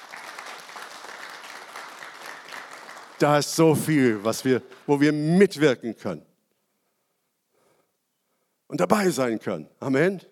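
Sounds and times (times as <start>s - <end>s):
audience applause: 0.0s - 4.9s
speech: 3.2s - 6.3s, 8.7s - 10.2s.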